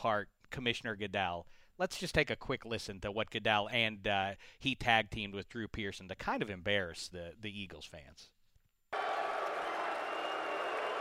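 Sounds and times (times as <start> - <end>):
speech: 0.0 - 8.4
stadium crowd booing: 8.9 - 10.9.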